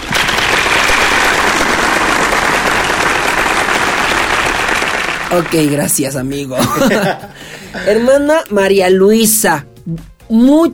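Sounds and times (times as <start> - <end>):
drum rolls: 0.0 - 5.6
applause effect: 0.0 - 6.6
speech: 5.3 - 10.7
laughter: 6.5 - 8.2.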